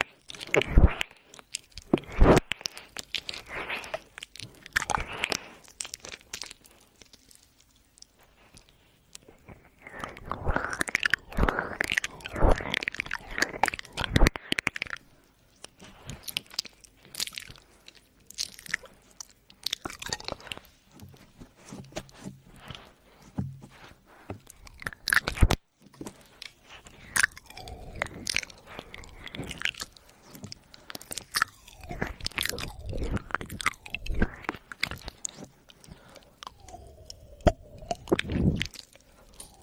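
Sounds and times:
woman's wet saliva ear licking voice: 0:00.0 - 0:39.6.

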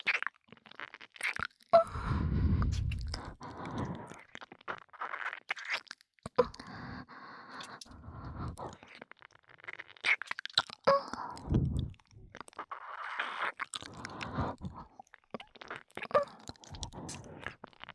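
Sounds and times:
ear licking sounds: 0:00.8 - 0:06.8, 0:10.0 - 0:17.9
relaxed breathing: 0:01.8 - 0:04.3, 0:06.5 - 0:08.9, 0:11.1 - 0:12.3, 0:13.9 - 0:15.0, 0:16.5 - 0:17.6.

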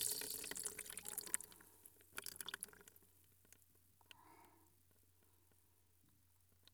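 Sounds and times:
urine splashing into a washbasin: 0:00.0 - 0:03.6.

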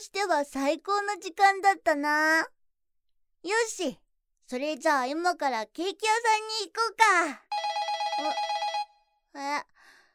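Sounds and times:
speech: 0:00.0 - 0:02.6, 0:03.4 - 0:07.5, 0:08.2 - 0:08.5, 0:09.3 - 0:09.7
telephone ringing with an internal extension call: 0:07.5 - 0:09.1.

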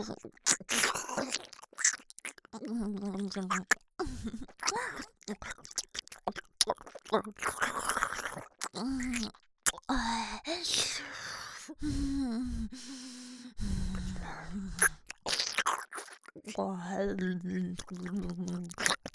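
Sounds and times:
ear licking on the left ear: 0:00.0 - 0:09.9, 0:13.8 - 0:19.1
nose breathing in the left ear: 0:11.1 - 0:15.1.

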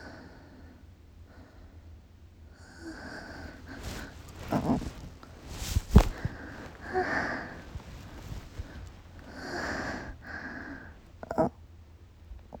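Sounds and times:
female university student masturbating: 0:02.8 - 0:11.6.

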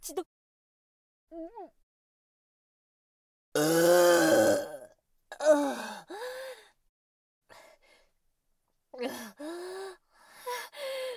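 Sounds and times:
burp: 0:03.6 - 0:05.6.

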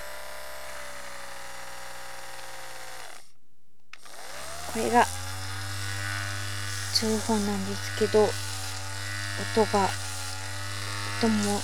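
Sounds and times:
mobile phone vibrating on weak setting: 0:04.4 - 0:11.6
speech: 0:04.7 - 0:05.2, 0:07.0 - 0:08.5, 0:09.4 - 0:10.0, 0:11.2 - 0:11.6.

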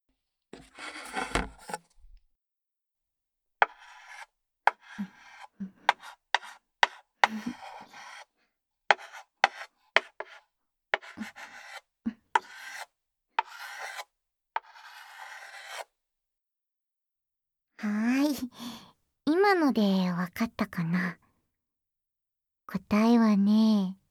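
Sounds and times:
chalk scraping on a shop signboard drawing straight lines: 0:00.6 - 0:01.8, 0:03.6 - 0:15.9
speech: 0:19.5 - 0:21.2, 0:22.9 - 0:24.0.

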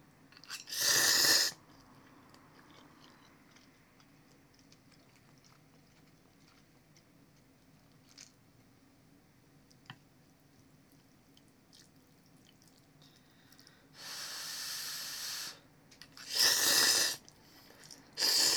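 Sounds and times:
person just eating ramen: 0:00.4 - 0:01.5, 0:16.1 - 0:17.3, 0:17.9 - 0:18.5.

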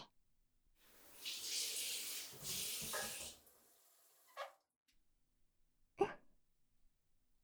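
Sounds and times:
ASMR ear licking: 0:01.1 - 0:03.4
handjob sound effects: 0:01.1 - 0:03.5.

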